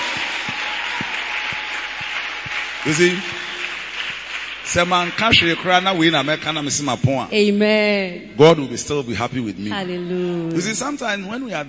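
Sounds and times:
audience clapping: 0.0s - 6.9s
speech: 2.8s - 3.4s, 4.7s - 11.6s.

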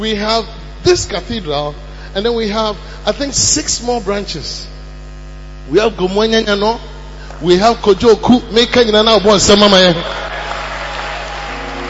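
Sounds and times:
speech: 0.0s - 4.7s, 5.7s - 10.3s
low electrical hum: 0.0s - 11.8s
audience clapping: 9.8s - 11.8s.

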